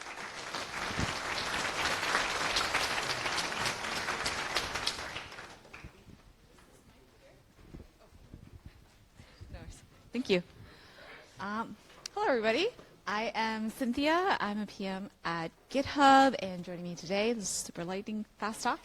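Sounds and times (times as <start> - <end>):
audience applause: 0.0 - 6.0
speech: 10.2 - 10.5, 11.4 - 18.8.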